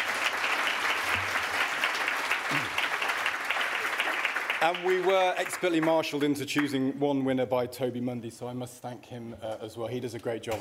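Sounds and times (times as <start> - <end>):
audience applause: 0.0 - 6.4
speech: 2.5 - 2.8, 4.6 - 10.5.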